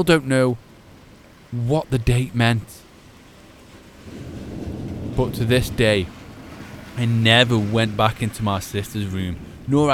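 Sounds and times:
speech: 0.0 - 0.6, 1.5 - 2.8, 5.2 - 6.2, 7.0 - 9.9
storm rain: 0.0 - 9.9
rolling thunder: 4.0 - 8.3, 9.3 - 9.9.

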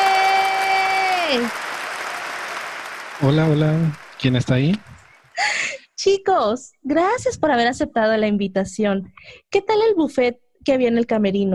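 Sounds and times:
audience applause welcoming guests: 0.0 - 5.3
speech: 1.3 - 1.6, 3.2 - 11.5.

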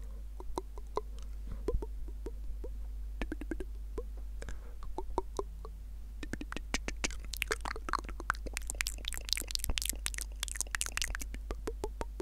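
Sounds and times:
steady low hum: 0.0 - 12.2
wet mouth clicks and smacks: 0.4 - 2.3, 3.2 - 3.7, 4.4 - 5.5, 6.2 - 12.2.

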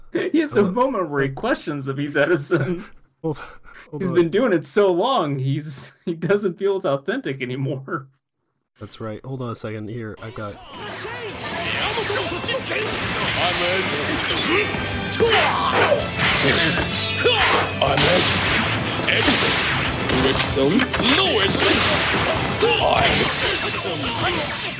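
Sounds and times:
speech: 0.1 - 8.2, 8.8 - 11.2, 12.0 - 24.7
gunshots: 10.7 - 24.7
explosions: 11.3 - 14.6, 17.8 - 24.7.

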